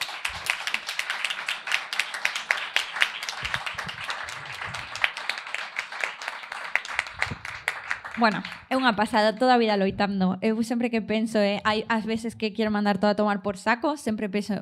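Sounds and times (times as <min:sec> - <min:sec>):
crowd applauding: 0:00.0 - 0:08.8
speech: 0:08.2 - 0:14.5.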